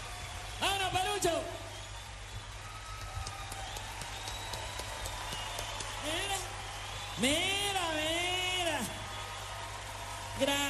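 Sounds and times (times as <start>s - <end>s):
audience applause: 0.0s - 10.6s
speech: 7.2s - 7.6s.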